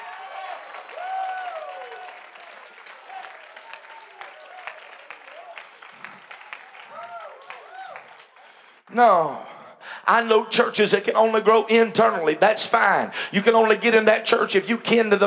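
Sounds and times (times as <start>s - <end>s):
audience clapping hands: 0.0s - 8.9s
speech: 8.9s - 9.4s, 10.1s - 15.2s.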